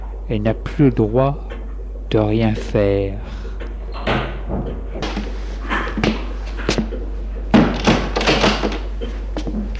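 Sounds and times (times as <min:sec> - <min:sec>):
speech: 0:00.3 - 0:01.5, 0:02.1 - 0:03.4
living room door opening: 0:03.7 - 0:06.9, 0:07.5 - 0:09.7.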